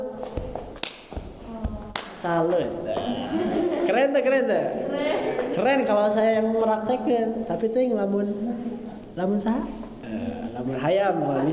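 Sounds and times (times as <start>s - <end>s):
sharp hand claps in a clapping chant: 0.1s - 3.2s
speech: 2.2s - 11.5s
laughter: 2.8s - 4.3s, 4.9s - 5.6s.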